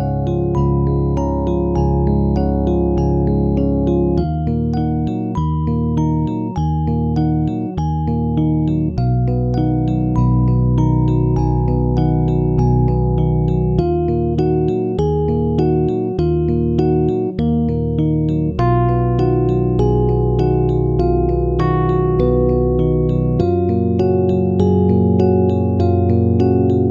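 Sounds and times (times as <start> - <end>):
bittersweet Rhodes electric piano chords: 0.0 - 26.8.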